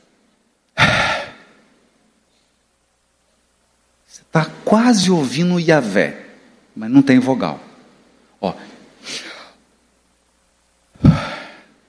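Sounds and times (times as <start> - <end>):
speech: 4.1 - 6.2, 6.8 - 7.6, 8.4 - 9.2
audible breath exhaled: 11.0 - 11.7.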